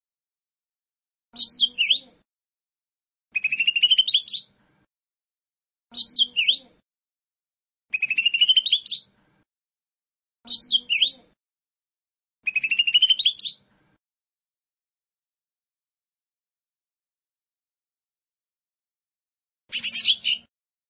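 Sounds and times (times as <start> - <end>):
bird song: 1.4 - 2.2, 3.3 - 4.8, 5.9 - 6.8, 7.9 - 9.4, 10.5 - 11.3, 12.4 - 13.9, 19.7 - 20.5.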